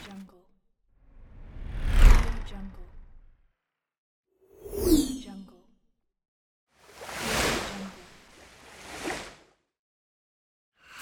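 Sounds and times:
whooshes: 1.5 - 2.8, 6.9 - 9.5.

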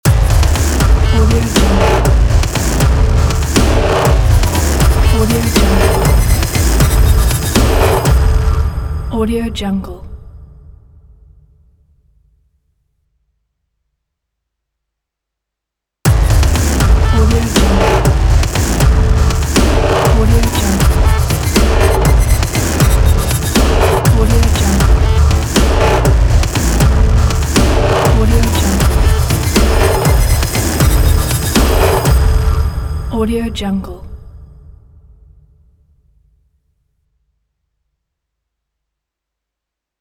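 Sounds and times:
industrial electro logo: 0.1 - 9.1, 16.1 - 33.1.

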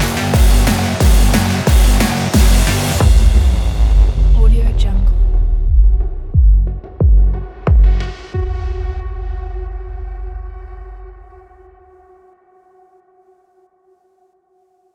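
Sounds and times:
cyberpunk game trailer music: 0.0 - 11.0.

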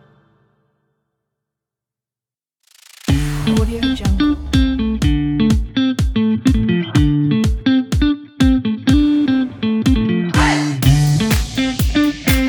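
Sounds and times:
cheerful uplifting motivating funk: 3.1 - 12.4.

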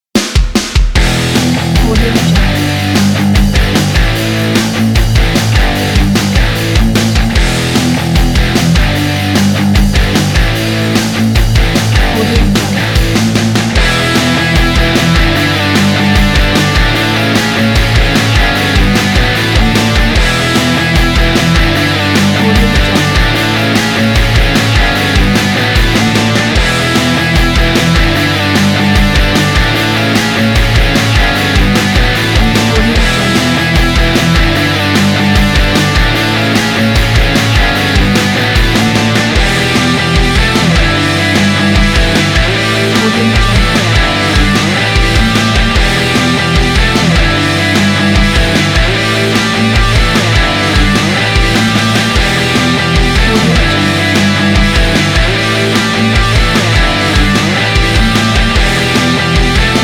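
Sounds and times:
driving rock music: 0.0 - 59.8.

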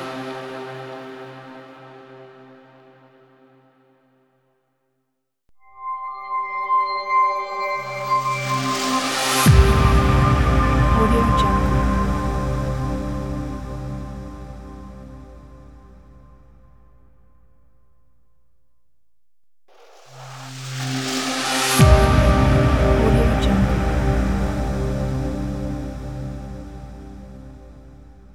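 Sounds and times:
dark logo music: 5.7 - 16.4, 20.4 - 28.3.

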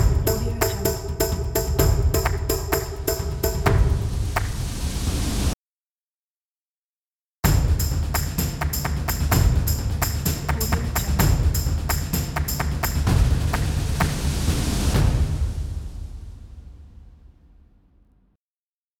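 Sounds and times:
claps: 0.0 - 4.6, 7.5 - 14.4
thunderous drums: 0.0 - 5.6, 7.4 - 16.8.

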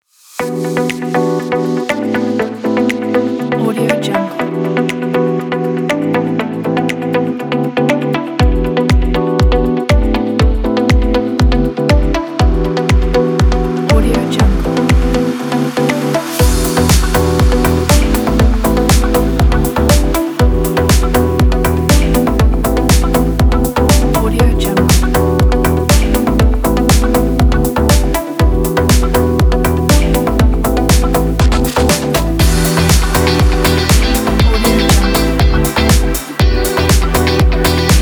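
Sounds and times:
upbeat fashion lounge corporate music: 0.3 - 37.9.

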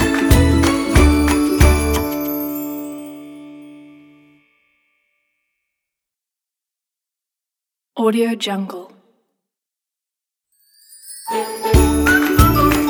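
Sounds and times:
whistled Christmas melody: 0.0 - 4.2, 10.7 - 12.8.

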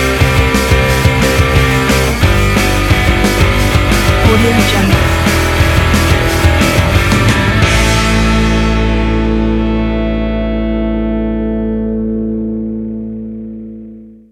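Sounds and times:
energetic indie rock music: 0.0 - 14.0.

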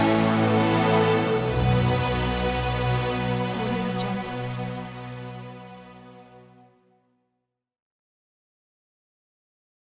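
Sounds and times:
dark powerful thriller music: 0.0 - 6.5.

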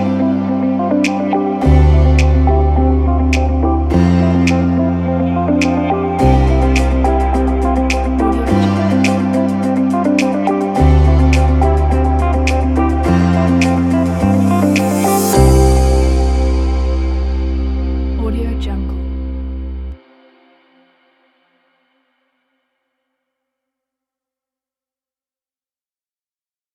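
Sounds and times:
bright corporate presentation music: 0.0 - 20.0.

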